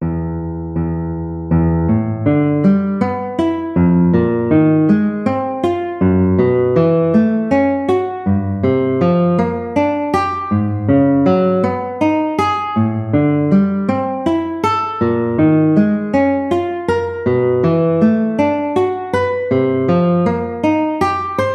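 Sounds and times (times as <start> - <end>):
guitar: 0.0 - 21.5.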